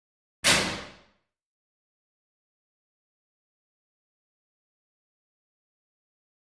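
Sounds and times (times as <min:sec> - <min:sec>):
metal locker in a locker room: 0:00.4 - 0:01.0.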